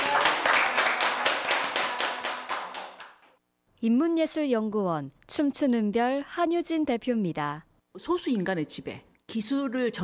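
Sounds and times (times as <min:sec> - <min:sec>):
applause, people clapping: 0:00.0 - 0:03.4
speech: 0:03.8 - 0:10.0.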